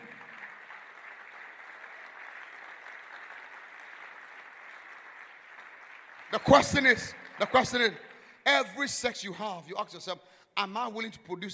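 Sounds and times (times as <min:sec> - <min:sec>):
audience clapping: 0:00.0 - 0:08.9
speech: 0:06.4 - 0:11.5.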